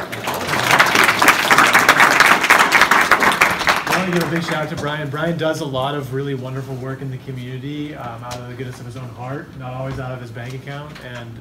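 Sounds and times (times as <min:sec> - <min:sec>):
round of applause: 0:00.0 - 0:04.7
speech: 0:04.1 - 0:11.3.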